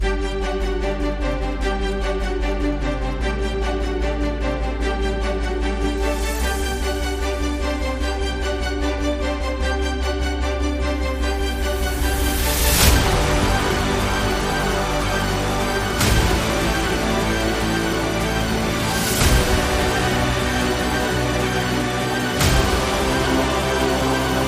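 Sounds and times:
underscore music: 0.0s - 24.4s.

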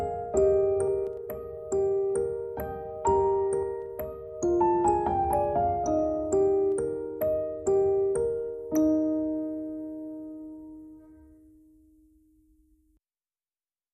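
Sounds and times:
music box: 0.0s - 9.8s
piano: 0.0s - 13.0s.

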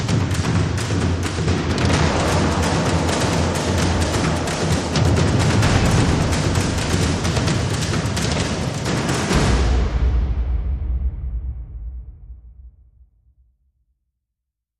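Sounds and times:
drums playing: 0.0s - 11.3s.

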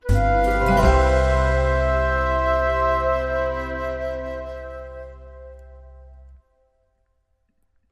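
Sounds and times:
short musical sting: 0.0s - 6.3s.

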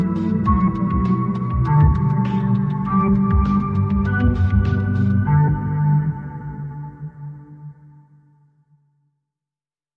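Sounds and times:
underscore music: 0.0s - 7.8s.

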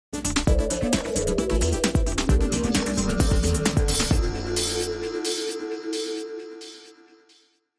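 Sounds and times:
music sting: 0.2s - 6.3s.

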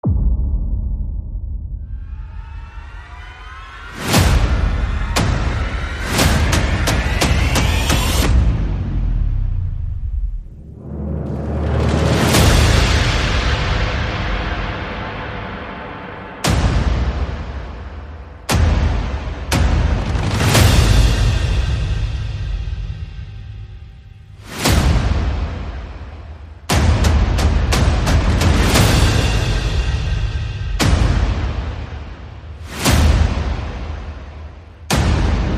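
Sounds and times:
percussion: 0.0s - 35.5s
sound effects: 1.9s - 13.0s.

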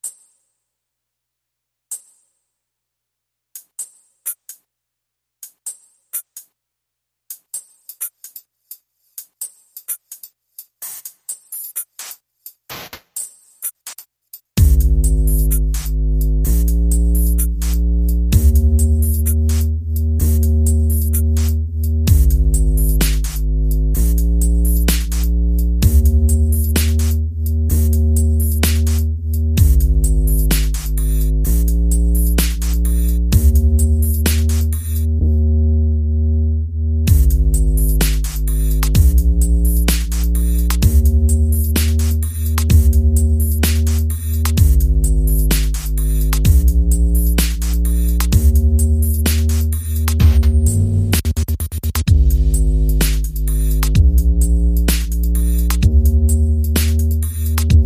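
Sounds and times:
drums: 7.3s - 35.1s, 37.1s - 57.8s
bass: 14.6s - 57.8s.

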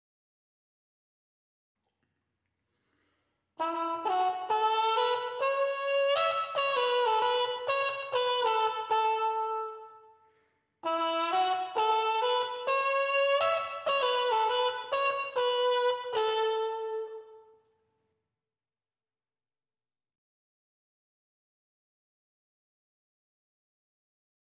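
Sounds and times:
trumpet: 3.6s - 17.7s.

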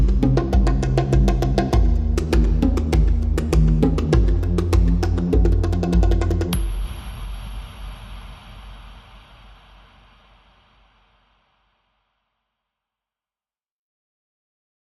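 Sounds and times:
bass: 0.0s - 6.8s
drums: 0.0s - 11.4s.

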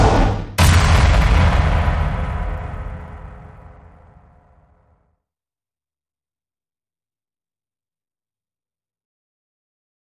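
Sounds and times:
drums: 0.0s - 4.3s
sound effects: 0.0s - 4.9s.

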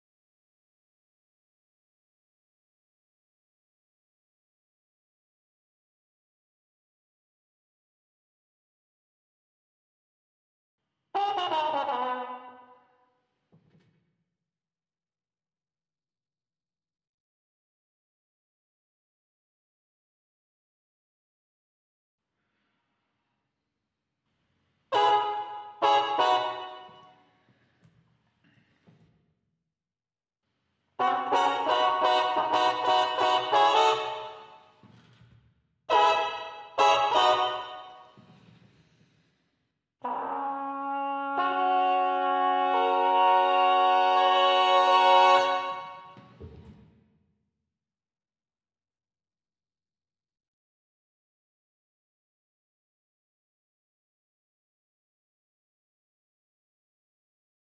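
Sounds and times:
trumpets: 11.2s - 12.9s, 24.9s - 27.4s, 31.0s - 34.8s, 35.9s - 38.2s, 40.0s - 46.3s.

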